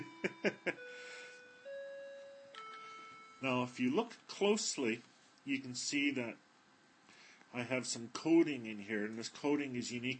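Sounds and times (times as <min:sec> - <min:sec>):
clock chiming bells: 0:00.0 - 0:03.7
speech: 0:00.4 - 0:00.8, 0:03.4 - 0:06.4, 0:07.5 - 0:10.1.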